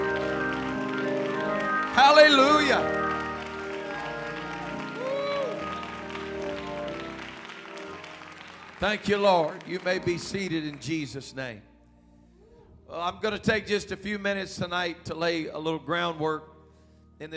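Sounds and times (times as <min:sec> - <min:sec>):
audience clapping: 0:00.0 - 0:11.0
speech: 0:02.0 - 0:03.0, 0:08.8 - 0:11.7, 0:12.9 - 0:16.5, 0:17.2 - 0:17.3.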